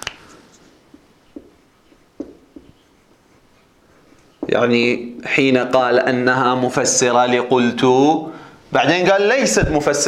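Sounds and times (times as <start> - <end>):
pen strokes on paper during an Arabic grammar lesson: 1.9 - 4.4
speech: 4.5 - 10.0.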